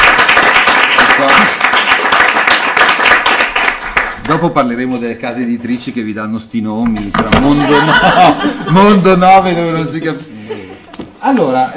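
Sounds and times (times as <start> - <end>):
audience applause: 0.0 - 4.2
speech: 4.3 - 10.4, 11.2 - 11.7
laughter: 7.0 - 9.5, 10.3 - 11.2.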